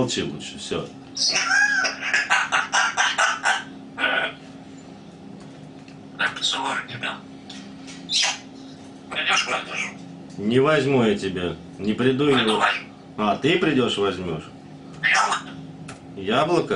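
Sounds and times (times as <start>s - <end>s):
speech: 0.0s - 1.6s, 6.5s - 7.3s, 8.1s - 8.4s, 9.3s - 14.6s, 16.2s - 16.7s
grey parrot chattering: 1.2s - 4.5s, 6.2s - 7.2s, 8.1s - 8.5s, 9.1s - 10.0s, 12.2s - 13.0s, 15.0s - 15.6s.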